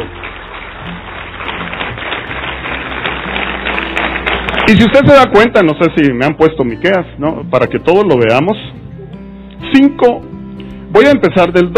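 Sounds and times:
large crowd applauding in a reverberant room: 0.0 - 5.7
speech: 4.7 - 8.7, 9.7 - 10.3, 10.9 - 11.7.

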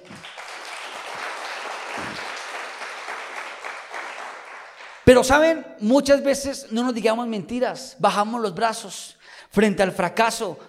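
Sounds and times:
audience applause: 0.0 - 5.1
speech: 5.1 - 10.6.

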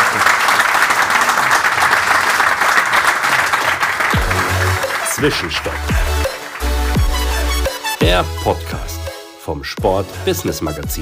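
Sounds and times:
audience applause at the football congress in Vienna: 0.0 - 7.6
speech: 5.2 - 6.1, 8.1 - 10.9.

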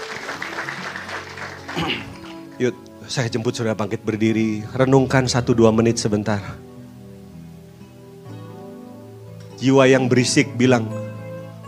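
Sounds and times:
audience applause: 0.0 - 2.5
speech: 1.8 - 6.7, 9.6 - 11.0.

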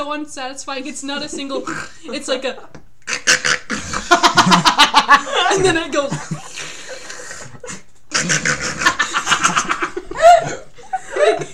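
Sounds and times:
speech: 0.0 - 2.8, 4.5 - 6.4, 8.2 - 9.6
voice imitating a person's snoring: 3.1 - 4.1, 8.1 - 9.0
laughter: 3.8 - 11.5.

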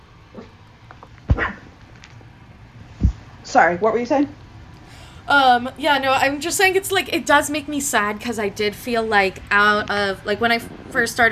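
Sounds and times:
dog barking outside the window: 1.3 - 1.7
speech: 3.5 - 4.4, 5.3 - 11.3.

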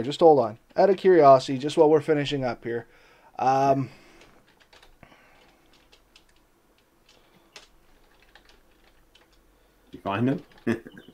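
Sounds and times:
speech: 0.0 - 4.0, 10.0 - 11.0
faint typing on a computer keyboard around a cord: 4.1 - 9.4, 10.3 - 10.7.

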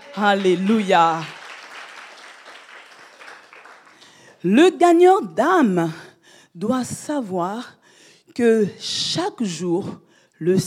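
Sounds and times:
church audience applauding: 0.0 - 4.2
speech: 0.2 - 1.4, 4.4 - 7.8, 8.4 - 10.6.

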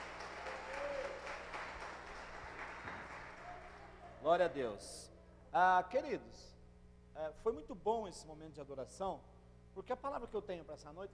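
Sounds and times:
audience applause: 0.0 - 4.1
speech: 4.2 - 6.6, 7.2 - 11.1.

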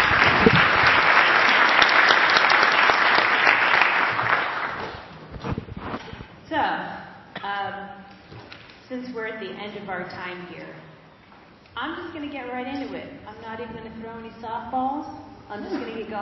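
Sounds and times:
applause: 0.0 - 5.1
speech: 12.2 - 16.1.

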